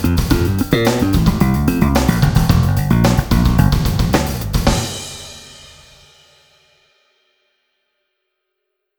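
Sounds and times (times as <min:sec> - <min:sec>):
slap bass: 0:00.0 - 0:05.0.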